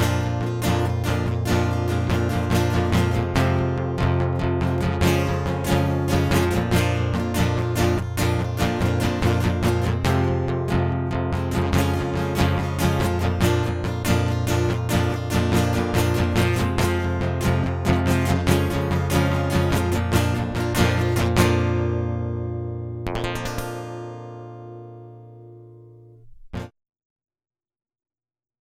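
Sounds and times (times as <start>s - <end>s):
guitar loop: 0.0s - 26.7s.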